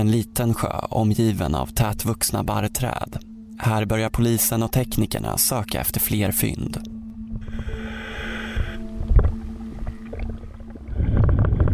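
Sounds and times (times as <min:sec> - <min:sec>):
speech: 0:00.0 - 0:06.9
steady low underwater hum from diver's camera: 0:05.9 - 0:11.7.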